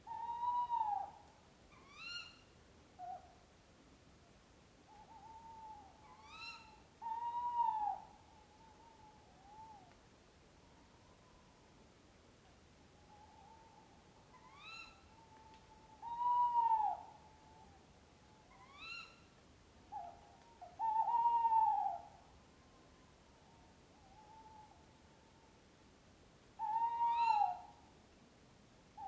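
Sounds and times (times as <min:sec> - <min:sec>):
owl hooting: 0:00.0 - 0:03.3, 0:04.9 - 0:09.9, 0:13.1 - 0:17.8, 0:18.4 - 0:19.3, 0:19.9 - 0:22.2, 0:23.4 - 0:24.9, 0:26.6 - 0:27.9.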